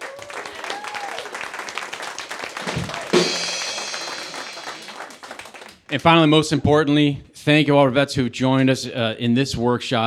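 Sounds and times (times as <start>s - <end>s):
audience applause: 0.0s - 6.5s
speech: 5.9s - 10.0s.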